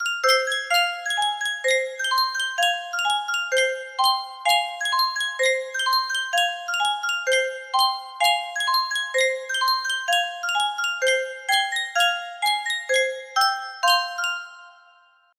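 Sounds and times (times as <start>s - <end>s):
Sankyo music box melody: 0.0s - 15.3s.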